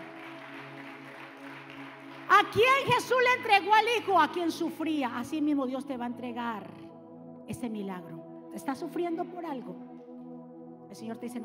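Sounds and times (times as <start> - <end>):
audience applauding: 0.0 - 2.6
speech: 2.3 - 6.8, 7.5 - 9.9, 10.9 - 11.4.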